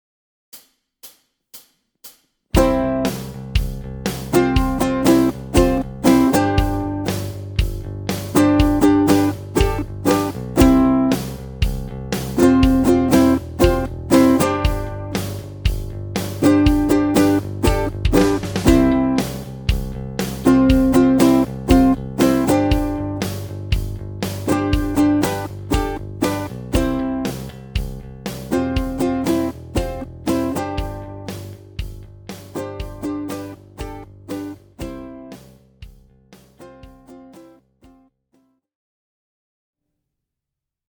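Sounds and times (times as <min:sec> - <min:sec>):
groove music: 0:02.6 - 0:37.5.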